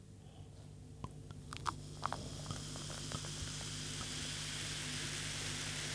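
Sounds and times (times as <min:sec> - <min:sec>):
drink being poured: 0:01.5 - 0:05.9.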